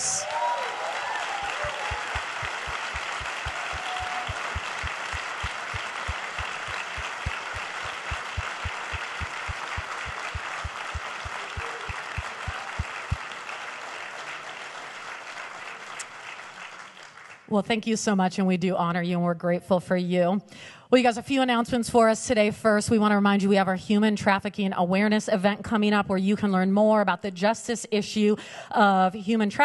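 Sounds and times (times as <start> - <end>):
audience applause: 0.0 - 17.5
speech: 17.5 - 29.6.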